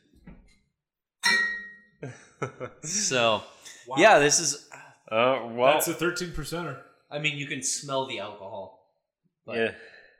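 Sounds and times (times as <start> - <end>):
glasses clinking in a toast: 1.2 - 2.0
speech: 2.0 - 8.8, 9.5 - 9.9.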